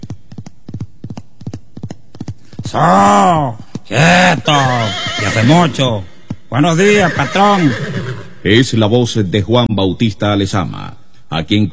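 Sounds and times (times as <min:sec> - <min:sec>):
horse galloping at full speed on the Venezuelan plains: 0:00.0 - 0:05.7
speech: 0:02.7 - 0:11.7.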